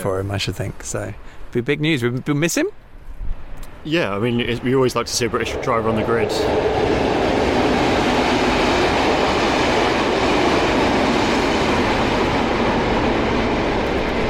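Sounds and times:
speech: 0.0s - 2.8s, 3.8s - 6.9s
long freight train rumbling past: 3.3s - 14.2s.

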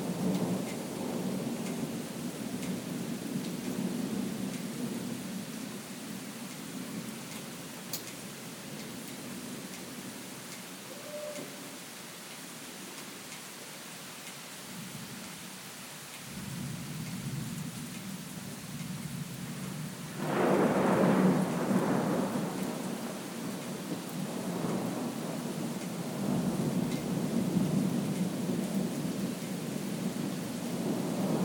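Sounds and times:
thunderstorm: 0.0s - 7.5s, 16.3s - 31.4s.

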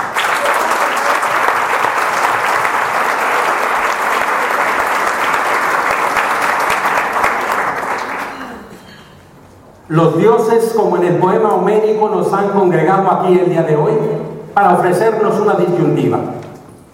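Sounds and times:
audience applause: 0.0s - 8.9s
speech: 9.9s - 16.4s.

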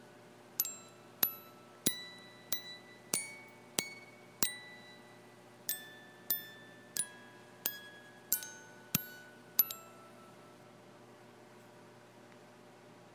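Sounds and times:
music box mechanism: 0.6s - 10.6s.

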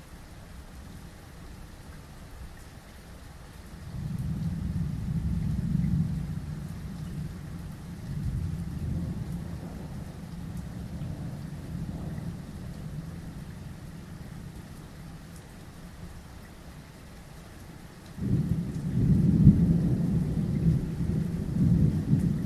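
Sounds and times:
thunderstorm in the early hours: 3.8s - 14.7s, 18.2s - 22.4s.

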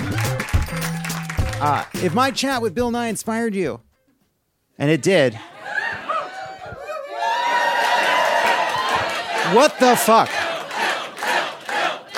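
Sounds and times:
crowd cheering: 0.0s - 2.2s, 5.4s - 12.1s
speech: 1.6s - 3.9s, 4.8s - 5.5s, 9.5s - 10.4s.

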